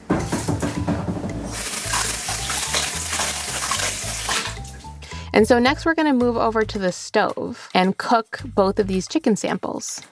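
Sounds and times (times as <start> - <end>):
washing hands: 0.0 - 5.0
running tap water: 0.0 - 5.1
speech: 5.4 - 10.1.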